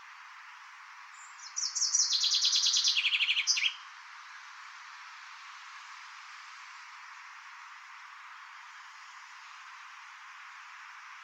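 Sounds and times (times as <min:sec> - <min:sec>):
common chaffinch song: 0:01.4 - 0:03.7.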